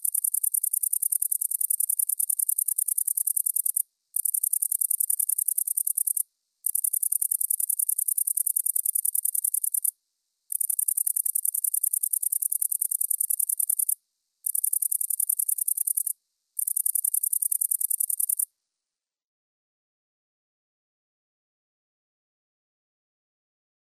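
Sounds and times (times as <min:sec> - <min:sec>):
great green bush-cricket chirping: 0:00.0 - 0:09.9, 0:10.5 - 0:18.5.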